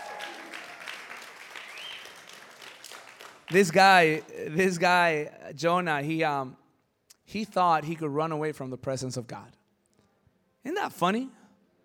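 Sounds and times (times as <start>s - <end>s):
audience applause: 0.0s - 4.2s
speech: 3.5s - 6.6s, 7.3s - 9.6s, 10.6s - 11.4s.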